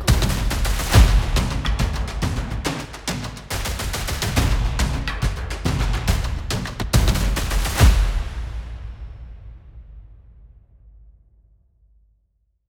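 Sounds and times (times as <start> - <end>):
industrial drums: 0.0 - 10.1.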